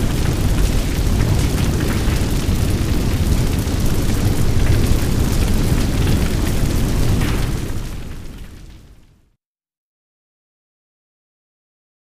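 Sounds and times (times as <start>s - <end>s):
chemical fire roaring: 0.0s - 9.1s.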